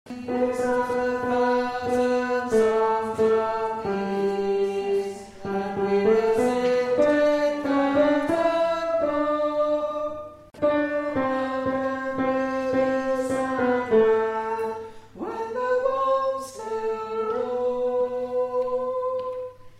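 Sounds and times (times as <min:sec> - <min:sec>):
tenor singing: 0:00.1 - 0:19.7.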